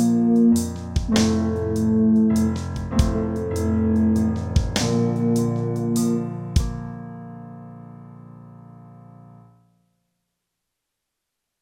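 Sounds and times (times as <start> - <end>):
brass practice on low B flat and mid E flat: 0.0 - 6.8.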